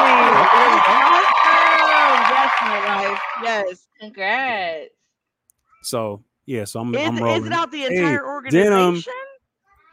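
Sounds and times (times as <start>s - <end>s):
clapping: 0.0s - 3.6s
speech: 3.6s - 5.0s, 5.8s - 9.2s.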